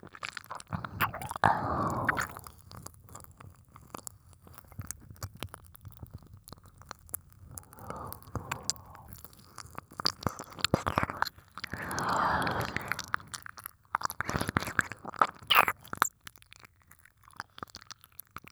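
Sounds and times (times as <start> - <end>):
light ear licking ASMR: 0.3 - 3.3, 6.1 - 16.1.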